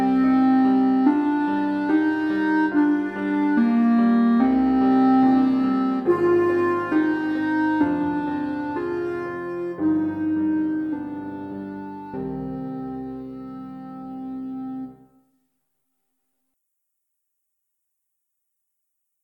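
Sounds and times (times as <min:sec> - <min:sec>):
slow adagio solo instrument piece: 0:00.0 - 0:15.3.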